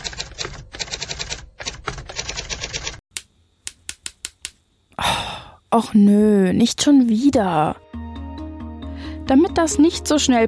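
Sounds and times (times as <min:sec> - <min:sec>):
fast typewriter typing with type bars jamming: 0:00.0 - 0:03.0
speech: 0:05.7 - 0:07.9, 0:09.3 - 0:10.4.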